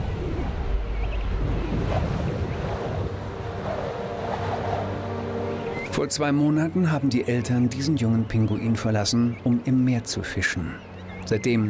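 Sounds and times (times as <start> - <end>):
howling wind of an icy snowstorm: 0.0 - 5.9
speech: 6.0 - 11.6.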